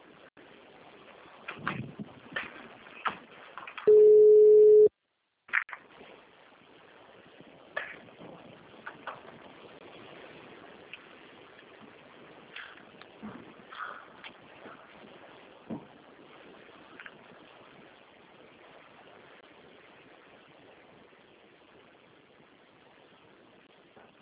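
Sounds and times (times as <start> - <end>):
low noise: 0.0 - 24.2
phone ringing tone: 3.9 - 4.9.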